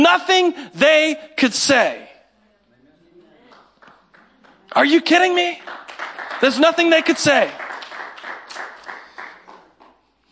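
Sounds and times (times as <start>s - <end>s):
speech: 0.1s - 2.1s, 4.7s - 7.6s
scattered applause from a small audience: 3.4s - 10.1s.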